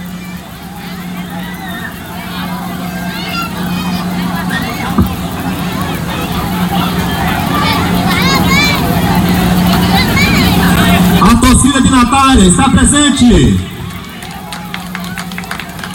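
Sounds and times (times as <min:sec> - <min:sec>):
fans shouting and cheering: 0:00.0 - 0:15.9
speech: 0:12.3 - 0:13.7.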